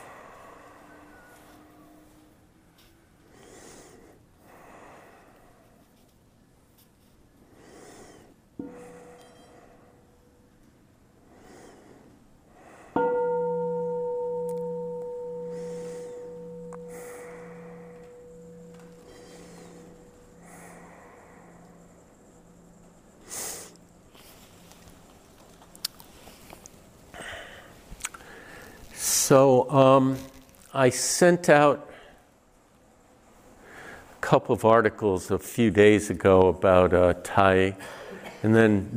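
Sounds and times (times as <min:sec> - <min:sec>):
mindfulness bell ringing: 0:13.0 - 0:20.9
speech: 0:29.3 - 0:31.9, 0:34.3 - 0:38.9.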